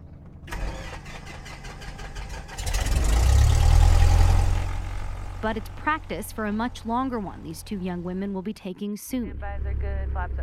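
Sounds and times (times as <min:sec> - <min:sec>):
light aircraft propeller engine starting: 0:00.5 - 0:08.1
speech: 0:05.4 - 0:10.4.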